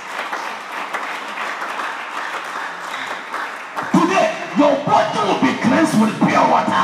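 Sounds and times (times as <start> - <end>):
crowd clapping: 0.0 - 4.9
speech: 4.6 - 6.7.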